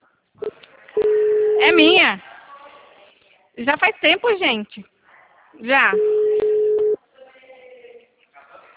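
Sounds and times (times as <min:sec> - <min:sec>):
telephone tone while placing a phone call: 0:01.0 - 0:01.9, 0:06.0 - 0:07.0
speech: 0:01.6 - 0:02.3, 0:03.6 - 0:04.9, 0:05.5 - 0:06.3.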